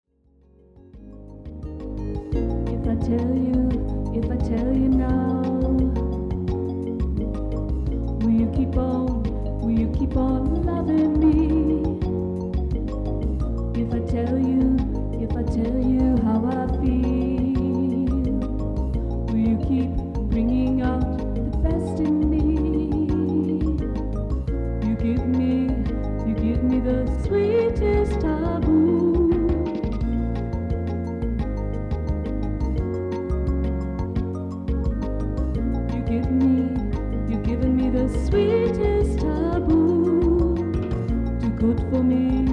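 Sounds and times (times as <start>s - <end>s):
jazz music: 1.0s - 42.5s.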